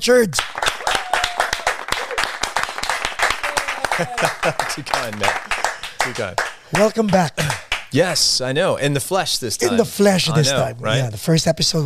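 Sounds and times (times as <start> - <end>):
speech: 0.0 - 0.6, 4.0 - 11.8
audience applause: 0.4 - 7.9
voices and whoops: 0.8 - 2.3, 3.2 - 4.6
laughter: 3.4 - 6.2.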